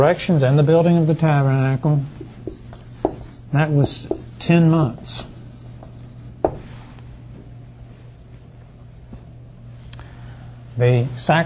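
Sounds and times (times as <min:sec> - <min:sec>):
speech: 0:00.0 - 0:02.2, 0:03.5 - 0:05.3, 0:10.8 - 0:11.4
someone writing something down: 0:02.2 - 0:06.7.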